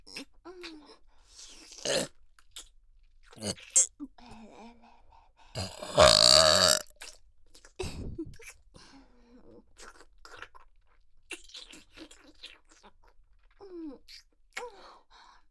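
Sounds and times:
person burping: 0:01.8 - 0:02.1, 0:03.4 - 0:03.9, 0:05.6 - 0:06.8
sucking sounds: 0:03.4 - 0:03.9, 0:05.6 - 0:06.8.

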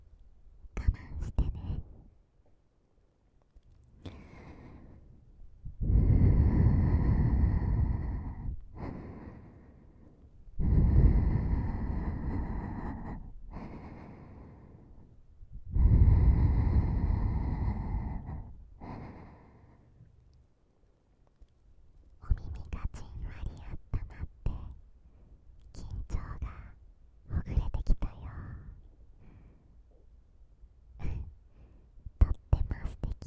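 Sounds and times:
older sister's sweet breathing in the right ear: 0:03.9 - 0:20.1, 0:22.6 - 0:30.1, 0:31.0 - 0:33.2.

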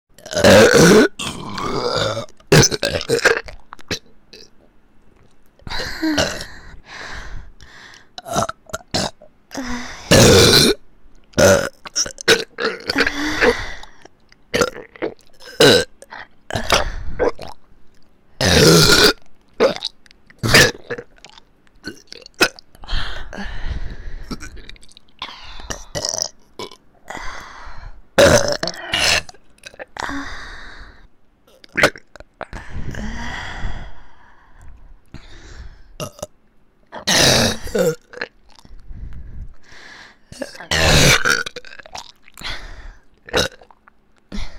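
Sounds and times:
burping in both ears: 0:00.2 - 0:04.5, 0:08.2 - 0:09.3, 0:10.1 - 0:10.8, 0:11.4 - 0:13.6, 0:14.5 - 0:17.6, 0:18.4 - 0:22.7, 0:24.2 - 0:27.2, 0:28.2 - 0:30.2, 0:31.5 - 0:32.3, 0:36.0 - 0:36.3, 0:37.0 - 0:38.7, 0:40.3 - 0:42.4, 0:43.3 - 0:43.9.

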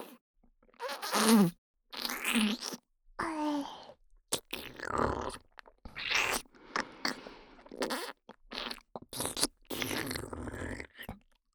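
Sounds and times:
slow wet oral sex mouth sounds in the left ear: 0:00.8 - 0:02.8, 0:04.3 - 0:11.2.

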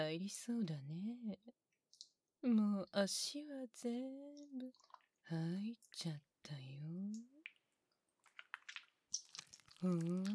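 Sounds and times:
speech: 0:00.0 - 0:01.6, 0:02.4 - 0:07.4, 0:09.8 - 0:10.3
thick gooey liquid squelching: 0:07.4 - 0:10.3.

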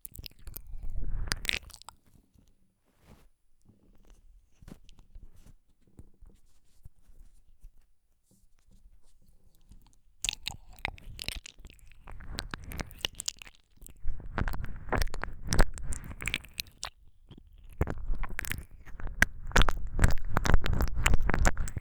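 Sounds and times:
realistic ear licking sounds: 0:10.2 - 0:21.7.

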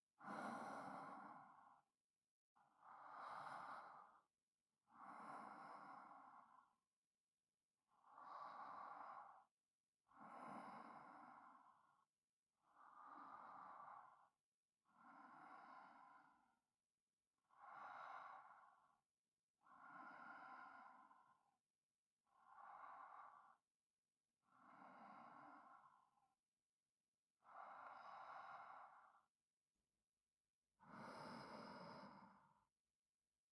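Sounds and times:
sleeping breath for sleep aid: 0:00.2 - 0:01.9, 0:02.8 - 0:04.3, 0:04.9 - 0:06.8, 0:08.0 - 0:09.5, 0:10.1 - 0:11.9, 0:12.7 - 0:14.4, 0:15.0 - 0:16.6, 0:17.5 - 0:19.0, 0:19.6 - 0:21.5, 0:24.5 - 0:26.2, 0:27.4 - 0:29.3, 0:30.8 - 0:32.7.

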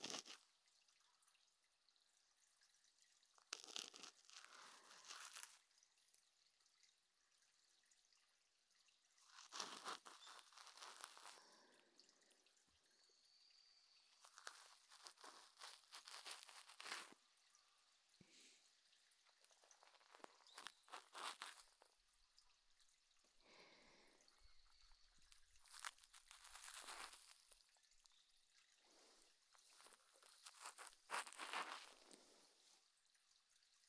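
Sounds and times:
ear cleaning on the right ear: 0:00.0 - 0:00.3, 0:03.6 - 0:05.6, 0:09.2 - 0:11.4, 0:14.2 - 0:17.2, 0:19.9 - 0:21.8, 0:25.6 - 0:27.6, 0:29.7 - 0:32.2.

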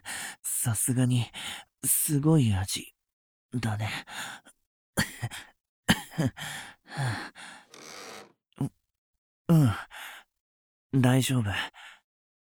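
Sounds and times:
speech: 0:00.6 - 0:02.9, 0:03.5 - 0:04.2, 0:06.2 - 0:07.4, 0:10.9 - 0:11.8
gasping breaths: 0:06.4 - 0:08.4
person coughing and sputtering after choking: 0:07.7 - 0:08.3.

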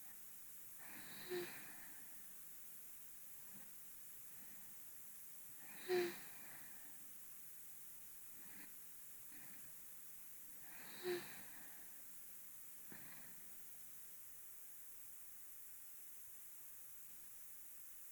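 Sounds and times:
person breathing in sleep, binaural: 0:00.8 - 0:02.3, 0:04.3 - 0:04.8, 0:05.6 - 0:07.1, 0:08.3 - 0:09.9, 0:10.5 - 0:12.2, 0:12.8 - 0:13.6.

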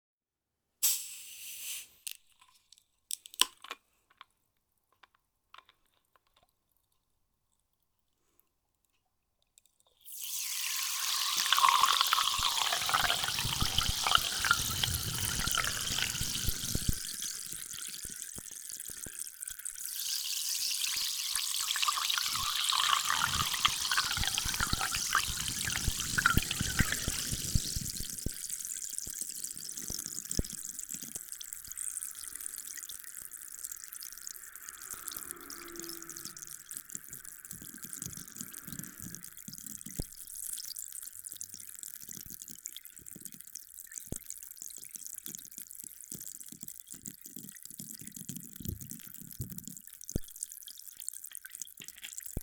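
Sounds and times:
carbonated drink fizzing: 0:00.8 - 0:02.1, 0:10.0 - 0:36.8.

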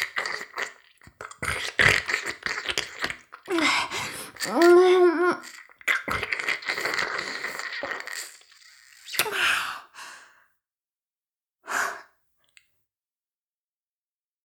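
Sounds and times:
ear licking ASMR sounds: 0:00.0 - 0:09.3.

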